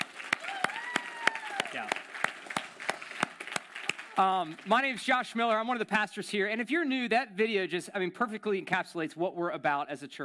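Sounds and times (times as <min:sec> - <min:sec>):
audience applause: 0:00.0 - 0:05.0
speech: 0:01.7 - 0:02.1, 0:04.2 - 0:10.2.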